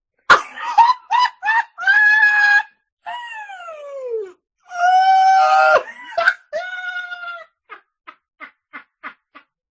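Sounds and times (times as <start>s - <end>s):
person laughing: 0.3s - 2.5s, 5.7s - 7.8s.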